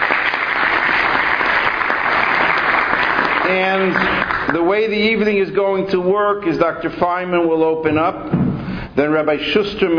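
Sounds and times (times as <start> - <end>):
applause from a large audience: 0.0 - 4.7
speech: 3.5 - 8.4, 9.0 - 9.9.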